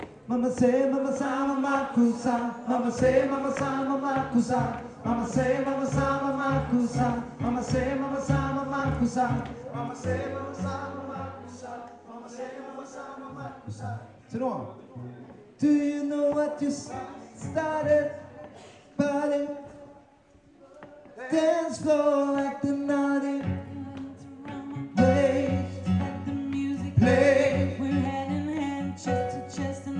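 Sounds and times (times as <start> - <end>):
tenor singing: 0.2 - 19.9, 20.6 - 29.9
choir singing: 0.7 - 14.1, 16.7 - 18.3, 24.6 - 28.1.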